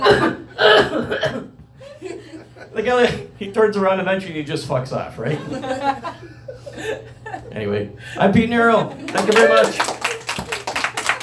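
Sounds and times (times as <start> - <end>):
loud coughing: 0.0 - 1.6
laughter: 1.8 - 3.3, 5.2 - 7.7, 8.9 - 11.2
speech: 2.8 - 9.9.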